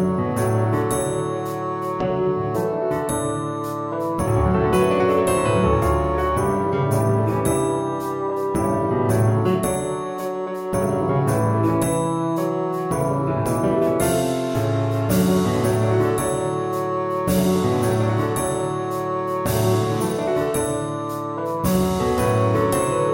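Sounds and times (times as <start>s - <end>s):
bassoon melody: 0.0s - 23.1s.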